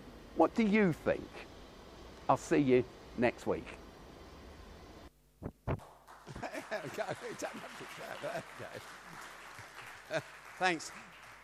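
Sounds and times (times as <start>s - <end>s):
speech: 0.4s - 1.5s, 2.3s - 3.8s, 6.8s - 9.3s, 10.1s - 11.1s
audience clapping: 5.8s - 11.4s
laughter: 6.3s - 10.8s.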